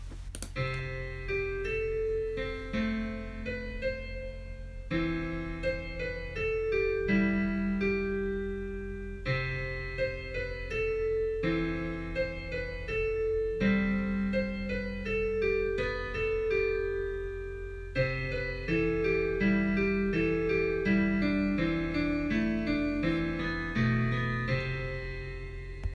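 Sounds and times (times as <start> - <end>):
instrumental music: 0.0 - 25.9.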